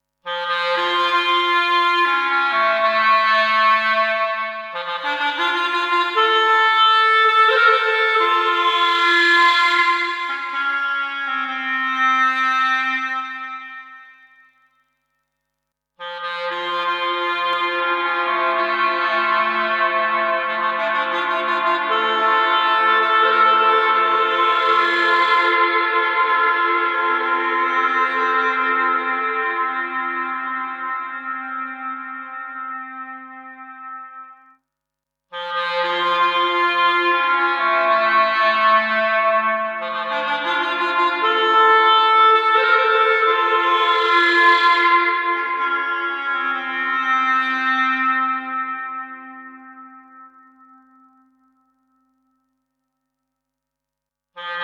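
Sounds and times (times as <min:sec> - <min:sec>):
clarinet: 0:00.2 - 0:15.0, 0:16.0 - 0:34.6, 0:35.3 - 0:52.9, 0:54.4 - 0:54.6.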